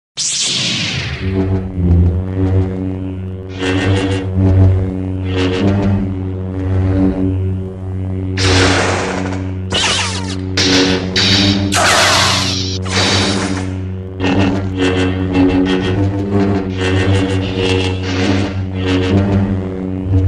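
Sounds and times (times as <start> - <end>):
lightsaber humming: 0.2 - 20.2.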